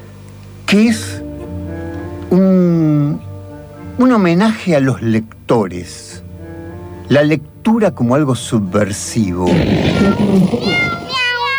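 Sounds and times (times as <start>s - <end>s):
speech: 0.7s - 1.2s, 2.3s - 2.7s, 4.0s - 6.2s, 7.1s - 11.0s
cat meowing: 9.6s - 11.5s.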